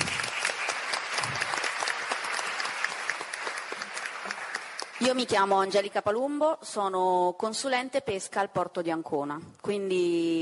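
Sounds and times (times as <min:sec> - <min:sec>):
audience clapping: 0:00.0 - 0:05.7
speech: 0:05.0 - 0:10.4.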